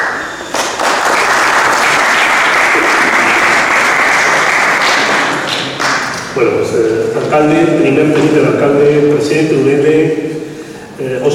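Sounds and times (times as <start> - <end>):
audience applause: 0.0 - 6.4
speech: 6.4 - 11.3.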